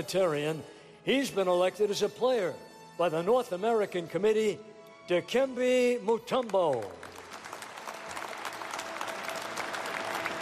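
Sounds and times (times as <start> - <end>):
speech: 0.0 - 7.1
audience applause at Basketball Hall of Fame induction ceremony: 6.7 - 10.4.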